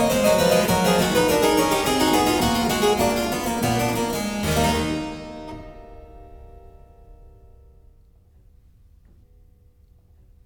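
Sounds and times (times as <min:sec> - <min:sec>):
keyboard fugue: 0:00.0 - 0:07.2.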